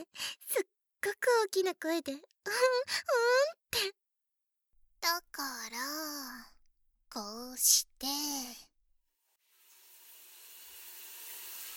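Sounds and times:
speech: 1.0s - 4.0s, 5.1s - 6.5s, 7.1s - 8.7s
shower water running: 9.5s - 11.7s.

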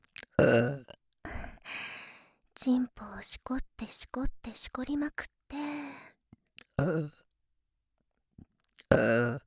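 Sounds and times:
burp: 0.2s - 1.0s, 6.7s - 7.2s, 8.8s - 9.4s
speech: 0.4s - 0.9s, 2.6s - 6.0s, 6.8s - 7.2s, 9.0s - 9.4s.

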